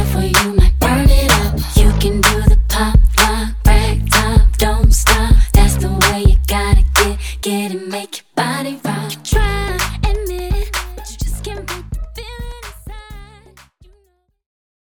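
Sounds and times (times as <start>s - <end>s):
drum loop at 127 bpm: 0.0s - 7.2s, 9.3s - 13.6s.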